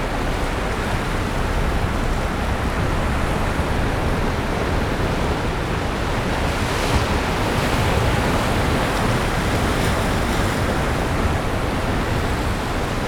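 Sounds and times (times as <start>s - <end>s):
ocean heard from the top of a stone dam in Orzola: 0.0s - 13.0s.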